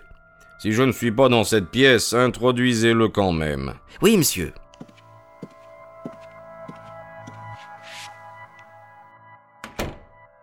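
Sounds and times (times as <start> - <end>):
speech: 0.6 - 4.6
soft knocks: 4.8 - 8.7.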